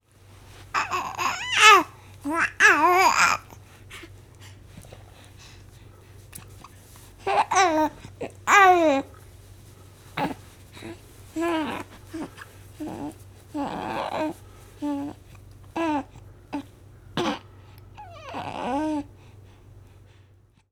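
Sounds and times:
baby babbling: 0.8s - 3.6s, 7.2s - 9.1s, 10.2s - 15.2s, 15.8s - 17.4s, 18.0s - 19.1s.

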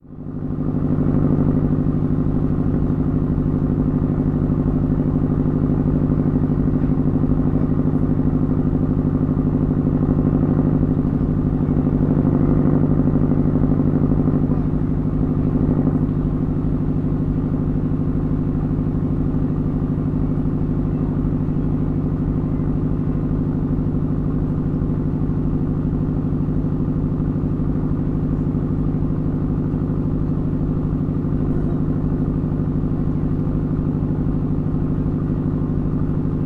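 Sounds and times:
motor boat: 0.0s - 36.4s.

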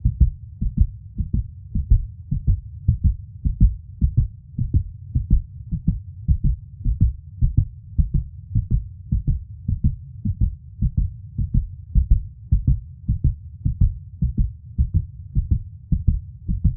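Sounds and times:
strong pounding heartbeat: 0.0s - 16.7s.

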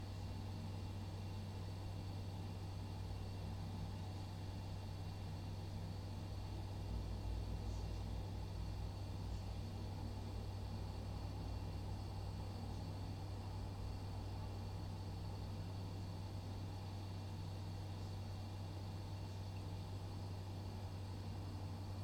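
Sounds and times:
kitchen fridge hum: 0.0s - 22.0s.

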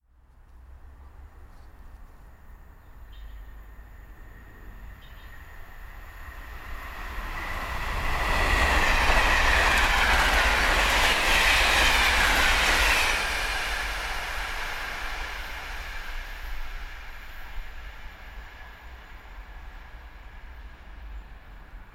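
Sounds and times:
train passing: 0.1s - 21.9s.

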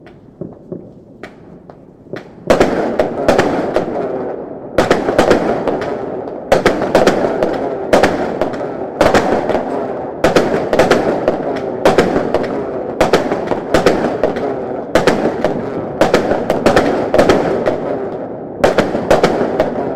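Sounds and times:
Chinese firecrackers: 0.0s - 19.9s.

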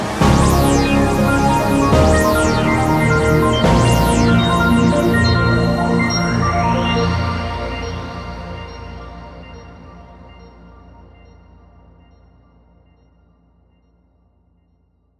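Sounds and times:
old-school video jingle: 0.2s - 7.9s.

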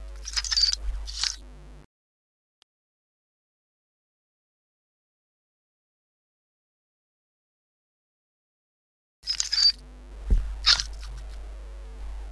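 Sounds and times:
creaking: 0.2s - 1.5s, 9.3s - 12.2s.

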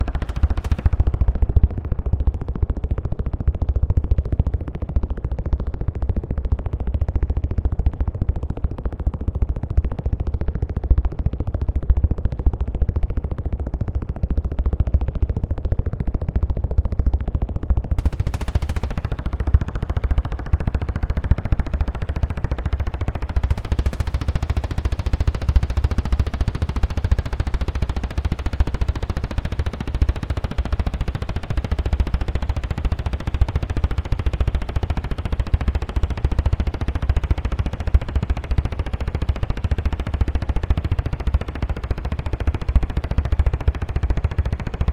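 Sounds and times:
helicopter without engine: 0.0s - 44.9s.

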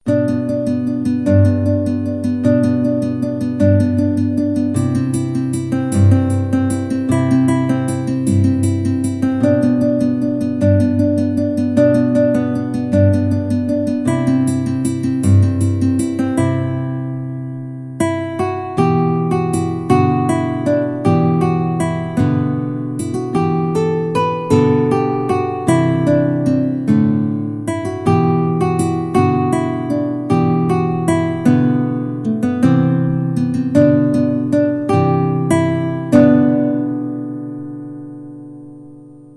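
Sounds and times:
acoustic guitar intro: 0.0s - 39.3s.

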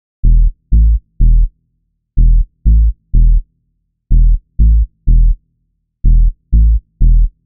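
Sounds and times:
minimal dance bass: 0.2s - 1.5s, 2.2s - 3.4s, 4.1s - 5.4s, 6.1s - 7.4s.

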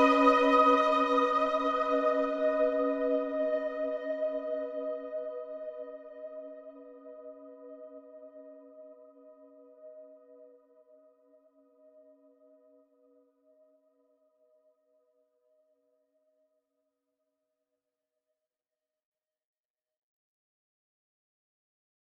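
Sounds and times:
synth swell: 0.0s - 6.3s.

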